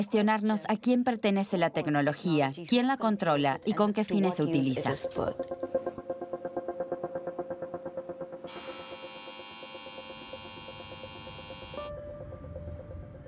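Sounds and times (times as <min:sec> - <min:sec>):
speech: 0:00.0 - 0:05.8
direct air capture plant turbines humming: 0:06.7 - 0:11.9.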